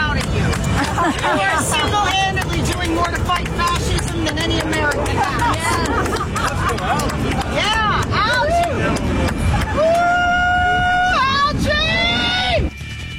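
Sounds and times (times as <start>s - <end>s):
large outdoor crowd cheering and chanting: 0.1s - 12.7s
laughter: 0.6s - 10.2s.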